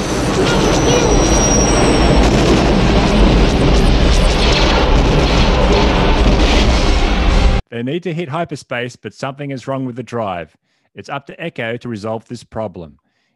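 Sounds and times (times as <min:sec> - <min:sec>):
spaceship blaster fire and explosions: 0:00.0 - 0:07.6
thin high whine: 0:00.0 - 0:07.6
speech: 0:07.8 - 0:13.0.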